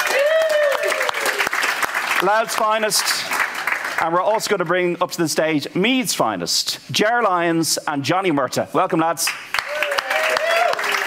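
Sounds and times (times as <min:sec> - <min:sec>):
applause: 0:00.0 - 0:04.4, 0:09.2 - 0:11.0
speech: 0:02.2 - 0:03.4, 0:04.0 - 0:09.6.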